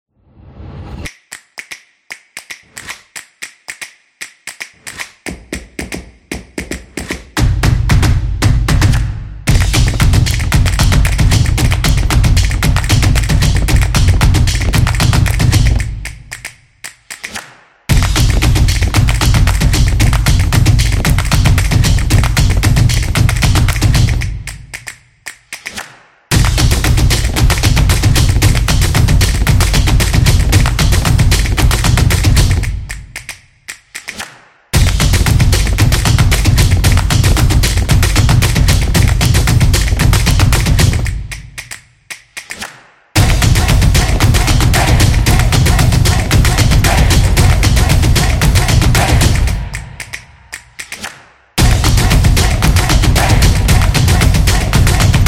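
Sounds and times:
upbeat drums: 0:05.3 - 0:16.4, 0:17.9 - 0:24.6, 0:26.3 - 0:33.2, 0:34.8 - 0:41.6, 0:43.2 - 0:50.2, 0:51.6 - 0:55.2.

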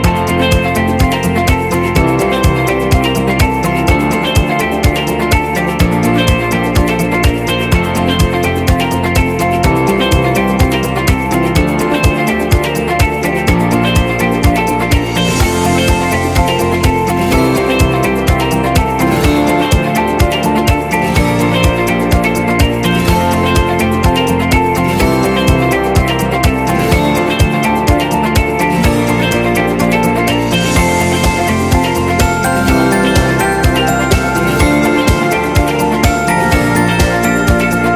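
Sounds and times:
corporate identity jingle: 0:00.1 - 0:37.9.

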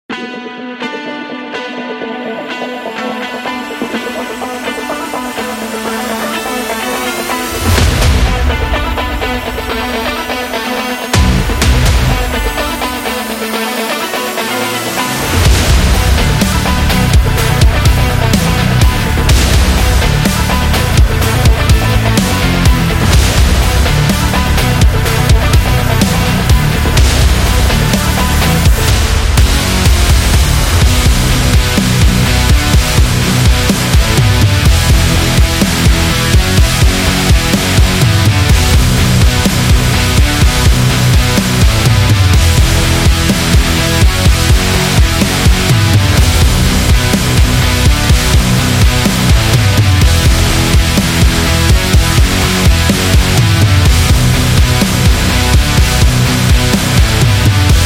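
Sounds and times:
rock power music: 0:00.0 - 0:57.8.

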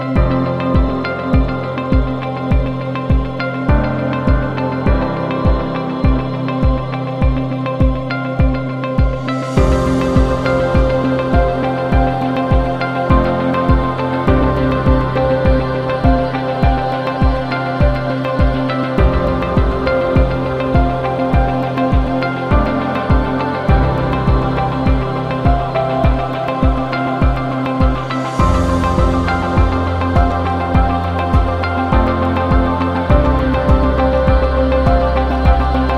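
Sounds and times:
corporate ambient music: 0:00.0 - 0:35.9.

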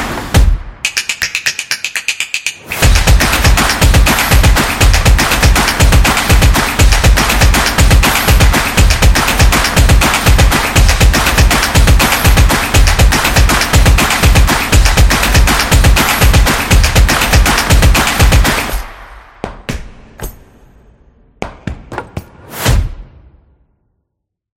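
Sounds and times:
drumming: 0:00.4 - 0:18.7
people clapping: 0:00.9 - 0:18.7.

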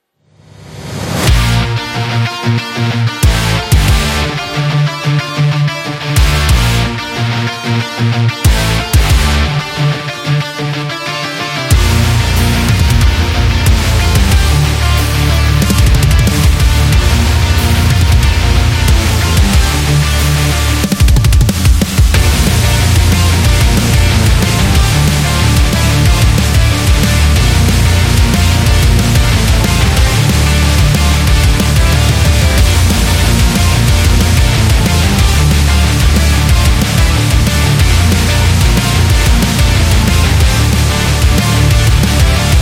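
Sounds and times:
heavy metal music: 0:00.4 - 0:42.5.

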